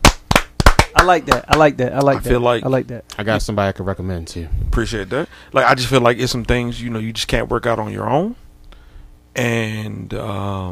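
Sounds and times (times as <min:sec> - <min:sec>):
loud sharp hand claps: 0:00.0 - 0:02.2
speech: 0:01.0 - 0:08.4, 0:09.4 - 0:10.7.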